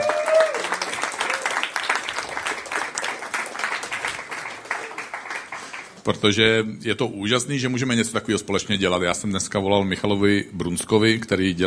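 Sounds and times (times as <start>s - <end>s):
audience applause: 0.0s - 6.0s
speech: 6.0s - 11.6s.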